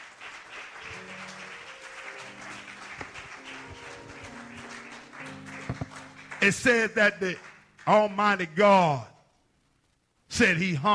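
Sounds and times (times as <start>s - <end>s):
audience applauding: 0.0s - 8.5s
speech: 5.7s - 9.1s, 10.4s - 10.9s.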